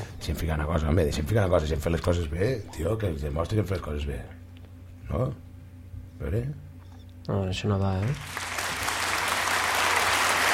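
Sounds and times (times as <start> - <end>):
speech: 0.3 - 4.4, 5.1 - 5.5, 6.2 - 6.6, 7.2 - 8.4
applause from a group of people: 8.0 - 10.5.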